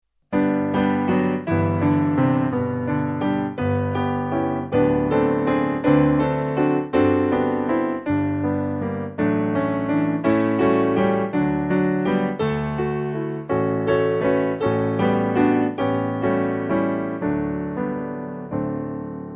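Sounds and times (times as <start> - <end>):
piano backing music for churches: 0.3 - 19.3.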